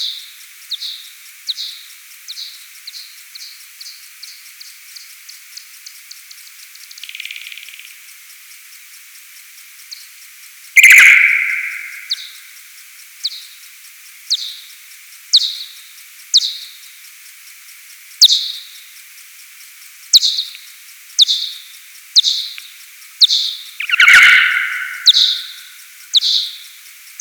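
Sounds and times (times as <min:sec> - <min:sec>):
P kuhlii FM signal: 0:07.0 - 0:07.9, 0:10.7 - 0:12.5, 0:20.1 - 0:20.6, 0:21.2 - 0:27.1.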